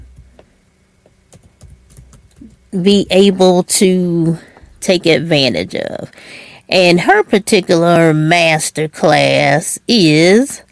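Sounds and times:
typing on a computer keyboard: 1.3s - 2.6s
speech: 2.7s - 10.6s.

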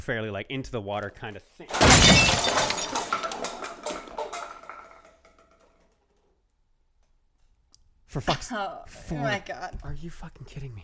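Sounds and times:
speech: 0.0s - 3.1s, 8.1s - 10.8s
light falling and breaking: 1.7s - 5.7s.

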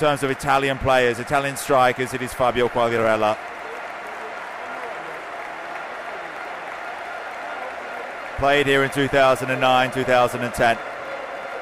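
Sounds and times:
speech: 0.0s - 3.5s, 8.4s - 10.9s
stadium crowd applause: 0.0s - 11.6s.

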